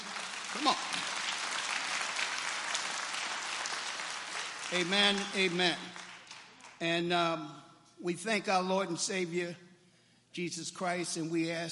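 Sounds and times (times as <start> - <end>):
audience hand clapping: 0.0 - 7.0
speech: 0.6 - 0.9, 4.7 - 6.0, 6.8 - 9.6, 10.3 - 11.6.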